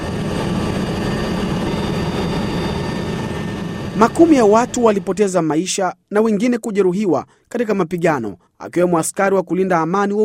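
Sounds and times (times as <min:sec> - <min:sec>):
United Nations aircraft engine drone carrying wounded people: 0:00.0 - 0:06.2
speech: 0:04.0 - 0:10.2.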